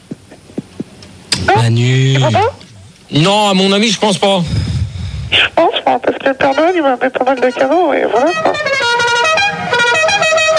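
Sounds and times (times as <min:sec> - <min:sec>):
speech: 0:01.5 - 0:04.6, 0:05.4 - 0:08.7
loud truck horn honking a musical wedding-style tune: 0:06.4 - 0:10.5.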